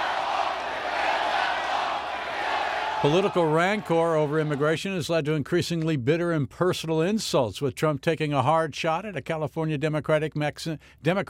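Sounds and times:
crowd cheering at Trump campaign rally in South Carolina: 0.0 - 4.8
speech: 3.0 - 11.2.

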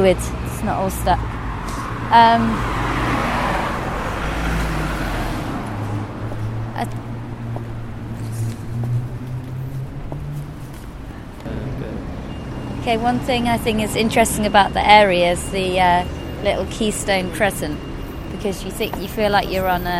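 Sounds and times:
speech: 0.0 - 2.8, 6.8 - 7.0, 12.8 - 19.9
bus engine hum: 0.0 - 19.9
road traffic with cars: 0.0 - 19.9.

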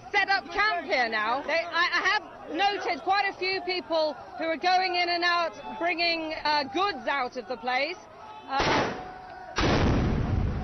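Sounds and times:
speech: 0.9 - 8.9
big guns firing into a building: 8.6 - 10.6.

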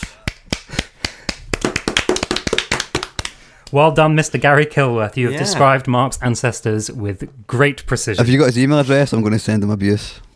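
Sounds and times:
hand clapping: 0.0 - 3.8
speech: 3.7 - 10.3.

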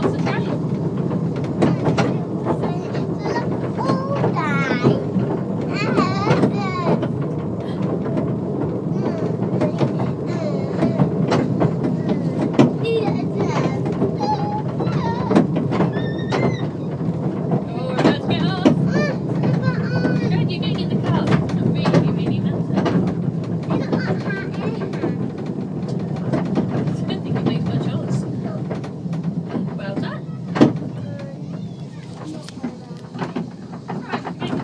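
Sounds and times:
Santa Special steam train carriages clattering: 0.0 - 34.6
excited children on the Santa Special steam train: 1.6 - 7.2, 8.8 - 21.3, 23.6 - 25.4, 30.0 - 34.6.

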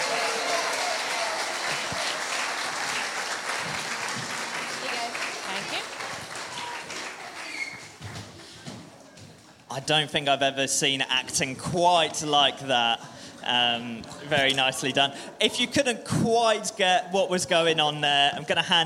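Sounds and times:
audience applause: 0.0 - 8.2
speech: 9.8 - 18.8.

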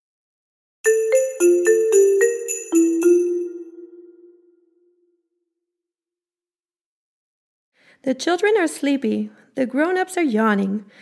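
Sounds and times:
silver bells chiming a quick descending run: 0.9 - 4.5
speech: 8.0 - 11.0.

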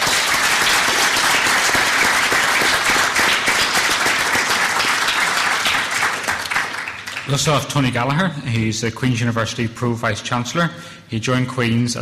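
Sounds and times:
audience applause: 0.0 - 7.6
speech: 7.3 - 12.0.

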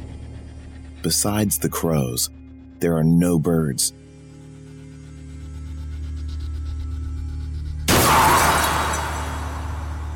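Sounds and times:
low steady rumble: 0.0 - 10.1
speech: 1.0 - 4.1
car crashing into tree: 7.9 - 10.1
glass shattering: 7.9 - 10.1.

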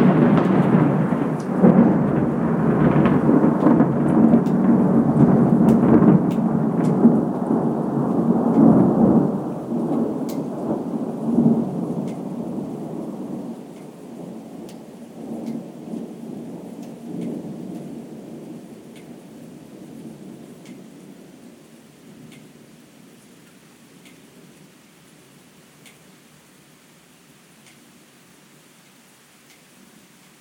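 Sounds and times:
thunderstorm: 0.0 - 23.3.

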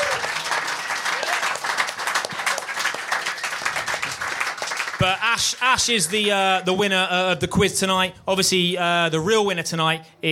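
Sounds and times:
audience applause: 0.0 - 6.2
speech: 5.0 - 10.3.

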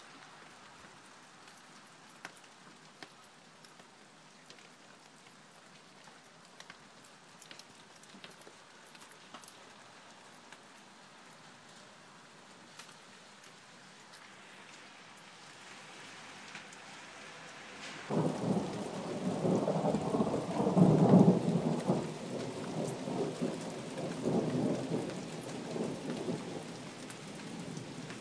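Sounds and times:
rain: 0.0 - 28.1
thunder: 18.0 - 26.7.

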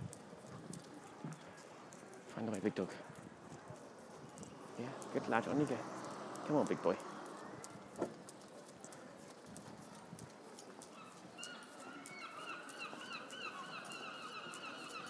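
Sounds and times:
speech: 2.4 - 3.2, 4.8 - 7.1
seagulls calling: 10.8 - 15.0.

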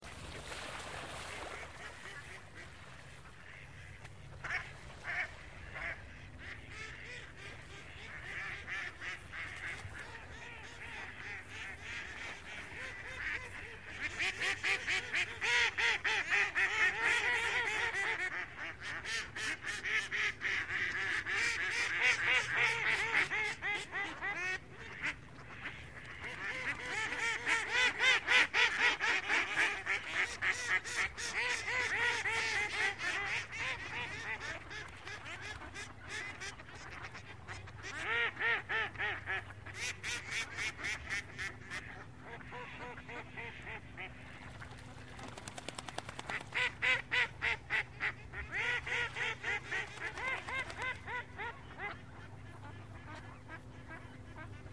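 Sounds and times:
noisy ducks on the lake: 0.0 - 54.7.

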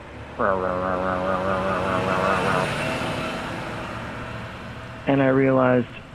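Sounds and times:
garbage truck speeding down an alley: 0.0 - 5.3
speech: 0.4 - 2.8, 5.0 - 6.0.

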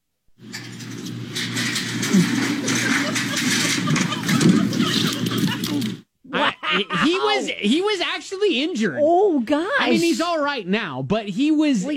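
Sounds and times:
person in full gear sliding fast down a metal slide: 0.5 - 6.0
laughter: 2.1 - 8.0
speech: 7.6 - 11.9.

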